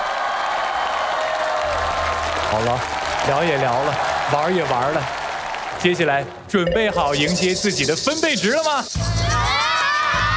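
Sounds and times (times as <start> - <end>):
audience clapping at a Chinese stage show: 0.0 - 6.4
crowd noise: 1.0 - 9.8
speech: 2.5 - 5.2, 5.8 - 9.2.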